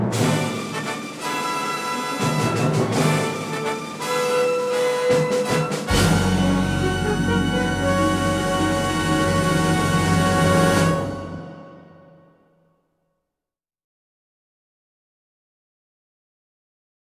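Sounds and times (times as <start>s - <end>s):
fanfare: 0.1s - 12.3s.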